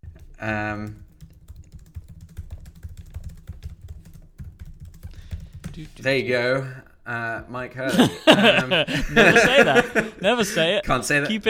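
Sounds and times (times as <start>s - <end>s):
rapid typing on a computer keyboard: 0.0s - 6.1s
speech: 0.4s - 1.1s, 5.8s - 11.4s
laughter: 7.8s - 11.4s.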